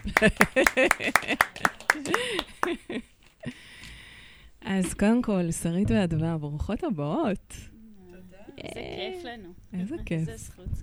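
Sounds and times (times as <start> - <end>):
hand clapping: 0.0 - 2.9
speech: 0.0 - 3.1, 4.7 - 7.7, 8.6 - 10.8
laughter: 0.0 - 3.6.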